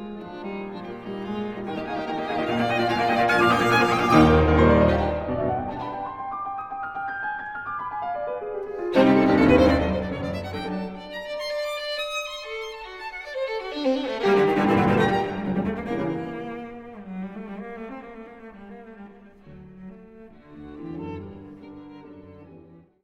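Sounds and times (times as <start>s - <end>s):
piano trio playing an allegro finale: 0.0s - 11.7s, 14.0s - 16.8s.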